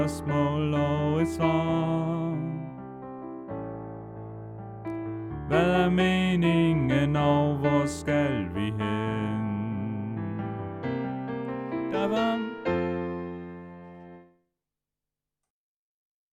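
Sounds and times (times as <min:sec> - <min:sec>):
soprano singing: 0:00.0 - 0:03.4, 0:05.4 - 0:10.9, 0:11.5 - 0:13.6.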